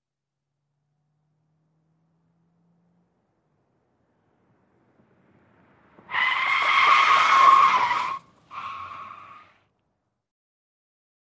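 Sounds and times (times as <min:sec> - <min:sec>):
sedan accelerating: 0:00.6 - 0:09.5
sedan tyres skidding: 0:01.1 - 0:10.0.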